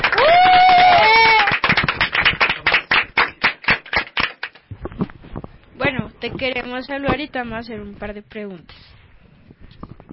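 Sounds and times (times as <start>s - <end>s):
loud applause: 0.0s - 4.5s
high rising cheers or whistles: 0.1s - 1.6s
speech: 6.2s - 8.8s.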